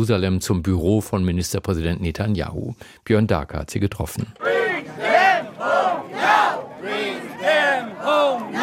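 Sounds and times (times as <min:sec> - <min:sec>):
speech: 0:00.0 - 0:05.0
marching crowd chanting a slogan: 0:04.4 - 0:08.6.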